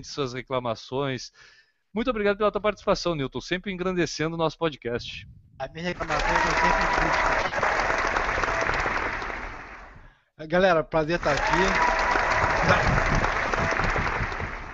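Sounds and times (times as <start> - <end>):
speech: 0.0 - 7.7, 10.4 - 12.0, 12.6 - 13.2
audience applause: 5.9 - 10.0, 11.1 - 14.7.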